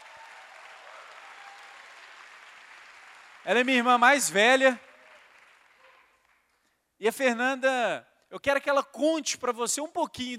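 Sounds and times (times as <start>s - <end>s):
audience applause: 0.0s - 6.5s
speech: 3.4s - 4.9s, 7.0s - 10.3s.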